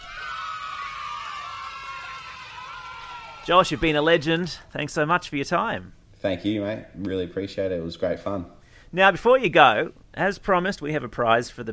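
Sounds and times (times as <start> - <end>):
audience applause: 0.0 - 4.0
audience cheering: 0.0 - 4.5
speech: 3.4 - 11.7.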